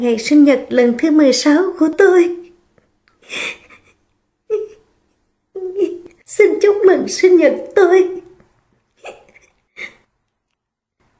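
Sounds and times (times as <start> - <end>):
speech: 0.0 - 2.4, 3.3 - 3.6, 5.7 - 8.2
voice acting out a young woman's tearful sobbing hiccups: 9.0 - 10.0.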